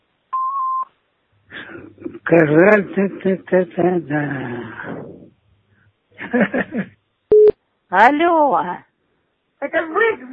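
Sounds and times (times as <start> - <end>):
speech: 2.0 - 5.1, 6.3 - 6.9, 7.9 - 8.9, 9.6 - 10.3
laughter: 6.2 - 7.0
electronic answering machine beep: 7.3 - 7.6.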